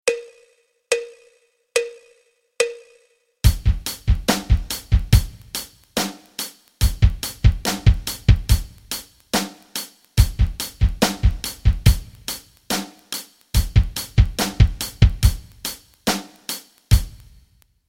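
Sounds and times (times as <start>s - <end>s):
rock rhythms: 3.4s - 17.5s.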